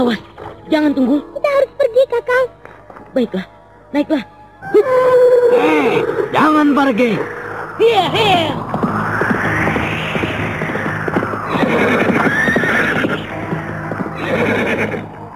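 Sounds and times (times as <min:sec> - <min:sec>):
speech: 0:00.0 - 0:01.3, 0:02.0 - 0:08.6
tall horse neighing loudly: 0:04.7 - 0:06.4, 0:11.5 - 0:13.2, 0:14.2 - 0:15.1
low rumble: 0:05.9 - 0:15.3
horse hooves clip-clopping: 0:08.6 - 0:15.3.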